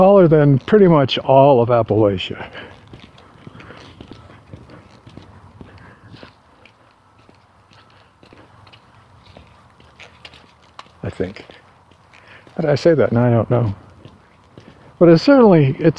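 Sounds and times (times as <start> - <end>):
speech: 0.0 - 2.7, 11.0 - 11.6, 12.6 - 13.8, 15.0 - 15.9
footsteps on a mountain trail at 4,800 feet: 0.0 - 15.9.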